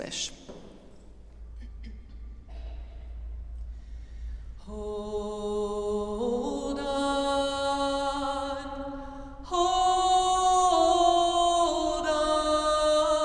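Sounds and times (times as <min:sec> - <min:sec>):
people singing in a church: 0:04.7 - 0:13.2.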